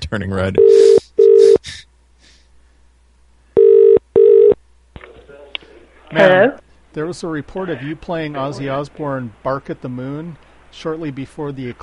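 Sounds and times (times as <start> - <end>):
speech: 0.1 - 1.0, 6.1 - 11.8
phone line ringing out: 0.6 - 1.6, 3.6 - 4.6.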